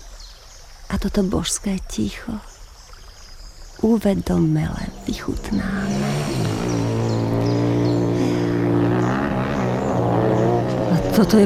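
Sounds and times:
speech: 0.9 - 2.5, 3.8 - 6.5, 11.2 - 11.4
motorcycles: 4.6 - 11.4.

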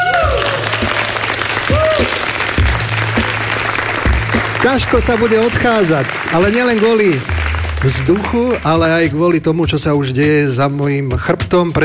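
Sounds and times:
crowd clapping and cheering: 0.0 - 9.4
speech: 4.6 - 11.8.

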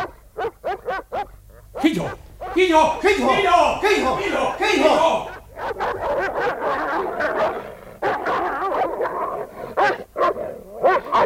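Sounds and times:
dogs barking and fighting: 0.0 - 2.6, 5.3 - 11.2
speech: 1.8 - 5.3
laughter: 1.8 - 5.5.

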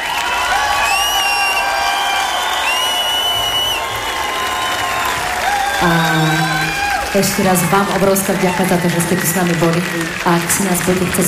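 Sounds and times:
audience applause: 0.0 - 11.2
speech: 5.8 - 6.4, 7.1 - 11.2.

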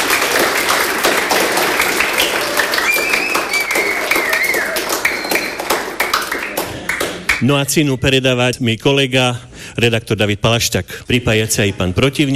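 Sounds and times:
audience applause: 0.0 - 7.4
speech: 7.4 - 12.3.

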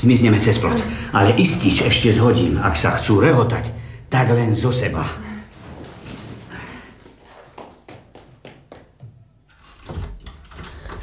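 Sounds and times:
speech: 0.0 - 5.3
bunch of keys jangling: 9.5 - 11.0.

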